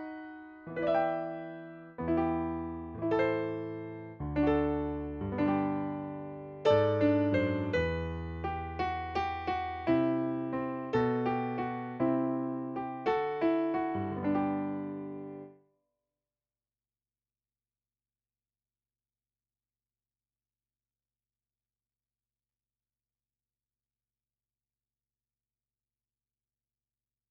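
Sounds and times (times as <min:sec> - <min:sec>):
piano: 0:00.0 - 0:15.7.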